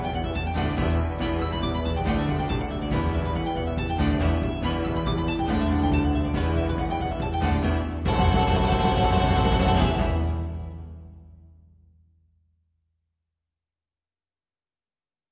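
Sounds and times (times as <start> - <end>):
mandolin ensemble: 0.0 - 11.1.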